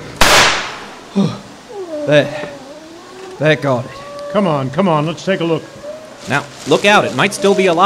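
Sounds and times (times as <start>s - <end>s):
rifle shot fired at a tiger: 0.2s - 1.0s
speech: 1.2s - 1.4s, 2.1s - 2.6s, 3.4s - 7.8s.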